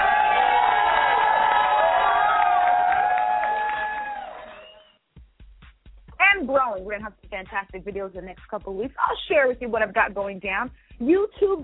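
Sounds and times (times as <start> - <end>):
audience applause: 0.0 - 5.0
speech: 6.8 - 11.6.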